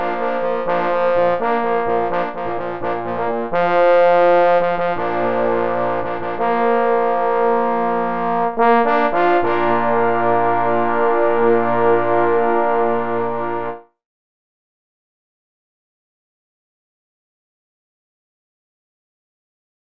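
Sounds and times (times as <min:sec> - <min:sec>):
fanfare for four parforce hunting horns: 0:00.0 - 0:13.9.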